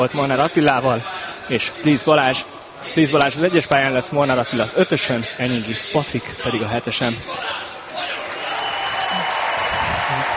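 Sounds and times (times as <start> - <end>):
speech: 0.0 - 7.6
stadium crowd applause: 7.9 - 10.3.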